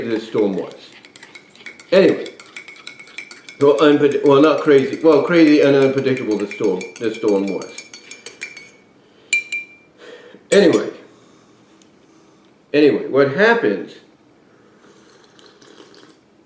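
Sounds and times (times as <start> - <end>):
speech: 0.0 - 1.0, 1.9 - 2.3, 3.6 - 7.8, 10.5 - 10.8, 12.7 - 14.0
ceramic coffee cup clinks: 1.8 - 9.9
slurping coffee: 14.8 - 16.2.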